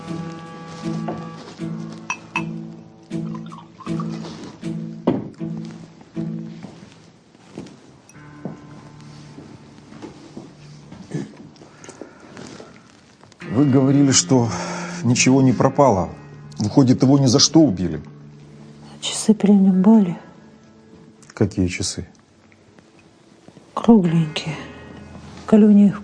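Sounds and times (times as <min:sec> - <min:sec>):
glass clinking: 0:02.0 - 0:02.6
water pouring into a glass: 0:03.2 - 0:04.2
speech: 0:13.6 - 0:18.1, 0:19.2 - 0:20.2, 0:21.4 - 0:22.2, 0:23.9 - 0:24.6, 0:25.5 - 0:26.0.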